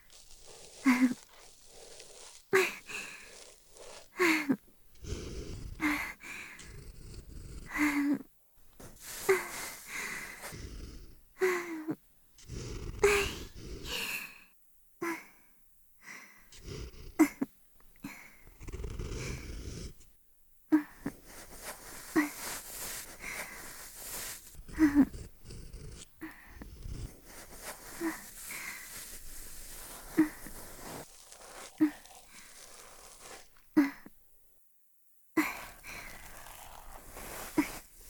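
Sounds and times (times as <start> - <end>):
binaural ear cleaning: 0.0 - 8.0, 8.7 - 11.2, 18.4 - 20.1, 20.9 - 34.2, 35.4 - 38.0
binaural breathing during ear cleaning: 0.0 - 8.2, 8.8 - 14.5, 15.3 - 17.2, 18.0 - 20.1, 20.8 - 34.0, 35.4 - 38.0.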